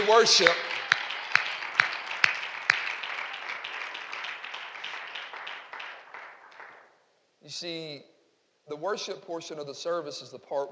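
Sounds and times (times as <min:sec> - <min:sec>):
crowd applause: 0:00.0 - 0:06.9
speech: 0:00.1 - 0:00.7, 0:07.5 - 0:08.1, 0:08.7 - 0:10.7.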